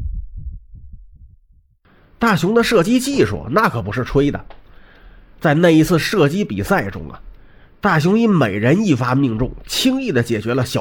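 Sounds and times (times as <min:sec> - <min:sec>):
pounding heartbeat sound effect: 0:00.0 - 0:01.8
speech: 0:02.2 - 0:04.6, 0:05.4 - 0:10.7.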